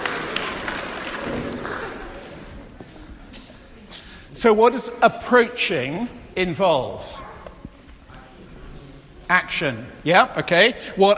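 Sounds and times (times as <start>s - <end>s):
round of applause: 0.0s - 2.4s
speech: 4.4s - 7.3s, 9.3s - 11.1s.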